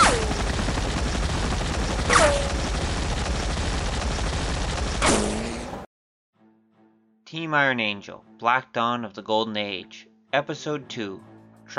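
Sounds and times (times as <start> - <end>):
explosion blasts with falling whine: 0.0 - 5.8
rapid gunfire from helicopter gunship: 0.0 - 5.9
speech: 7.3 - 11.7.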